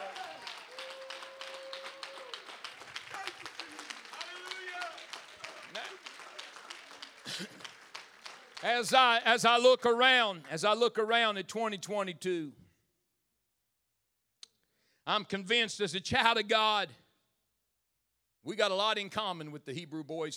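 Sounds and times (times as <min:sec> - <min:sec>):
audience clapping hands: 0:00.0 - 0:11.3
speech: 0:08.6 - 0:12.6, 0:15.1 - 0:17.0, 0:18.4 - 0:20.3.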